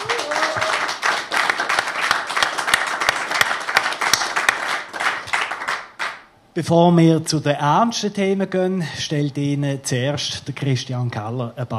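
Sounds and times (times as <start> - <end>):
studio audience applause for guests: 0.0 - 6.3
speech: 6.6 - 11.7.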